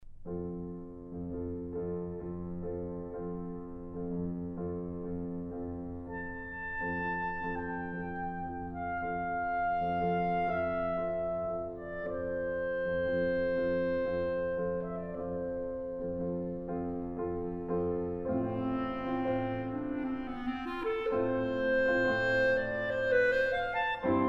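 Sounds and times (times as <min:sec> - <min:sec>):
musical trio: 0:00.3 - 0:24.2.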